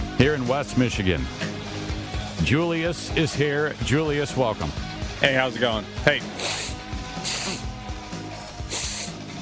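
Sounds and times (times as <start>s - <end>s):
speech: 0.2s - 1.5s, 2.4s - 6.5s
person sniffing: 6.3s - 7.7s, 8.7s - 9.2s.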